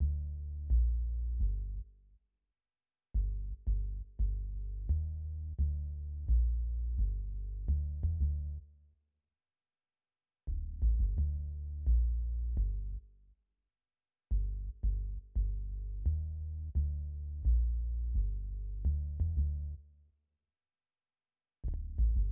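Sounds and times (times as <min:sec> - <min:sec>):
bass: 0:00.0 - 0:02.2, 0:03.1 - 0:08.8, 0:10.5 - 0:13.4, 0:14.3 - 0:19.9, 0:21.6 - 0:22.3.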